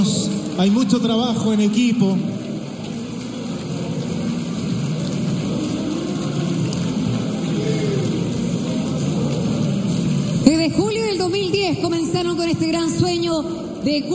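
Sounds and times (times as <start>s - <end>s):
speech: 0.6s - 2.4s, 10.7s - 14.1s
loud audience applause: 2.4s - 10.4s.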